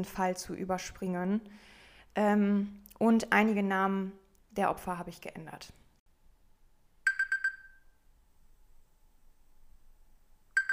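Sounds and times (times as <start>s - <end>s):
speech: 0.0s - 5.8s
alarm clock sounding shrill electronic beeps: 7.0s - 8.0s, 10.6s - 10.7s.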